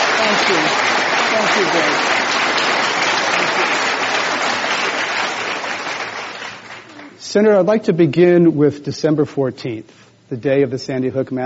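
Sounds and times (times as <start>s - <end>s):
applause welcoming Senator Dianne Feinstein at the Commonwealth Club of California: 0.0s - 7.2s
speech: 0.2s - 2.9s, 7.3s - 11.4s.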